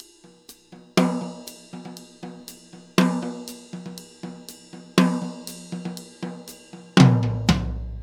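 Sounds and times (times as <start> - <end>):
laidback New York drum loop: 0.0 - 8.0.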